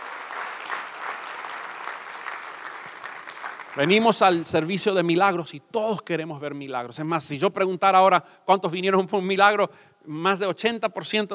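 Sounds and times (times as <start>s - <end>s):
audience applause: 0.0s - 4.4s
speech: 3.8s - 11.3s.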